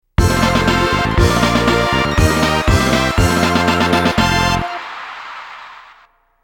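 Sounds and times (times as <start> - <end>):
battle victory music: 0.2 - 4.9.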